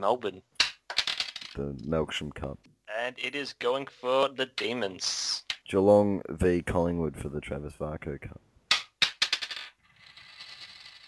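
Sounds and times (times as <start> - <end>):
speech: 0.0 - 0.6, 1.6 - 8.5
tossed coin landing and rattling: 0.6 - 1.6, 8.7 - 11.0.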